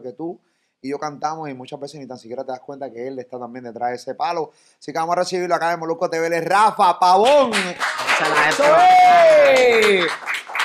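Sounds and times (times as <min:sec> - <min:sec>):
speech: 0:00.0 - 0:10.4
applause behind the cameras: 0:07.1 - 0:10.6.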